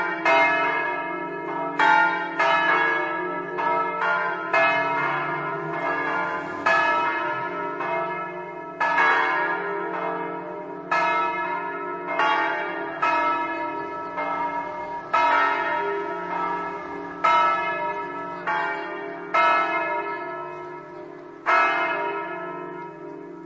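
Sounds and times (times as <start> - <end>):
bells ringing in Staranzano: 0.0 - 23.4.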